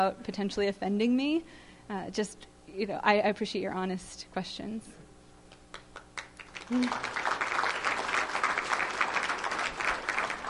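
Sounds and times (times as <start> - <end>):
speech: 0.0 - 5.0, 6.7 - 7.3
audience clapping: 5.5 - 10.4.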